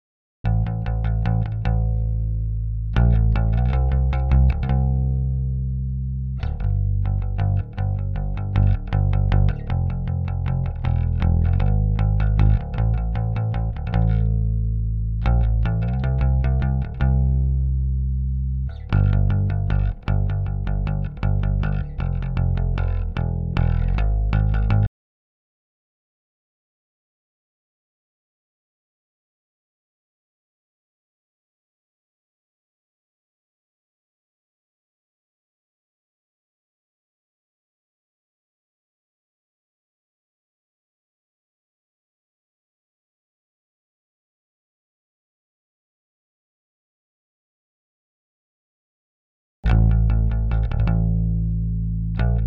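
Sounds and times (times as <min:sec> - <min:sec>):
bass: 0:00.4 - 0:24.9, 0:49.6 - 0:52.4.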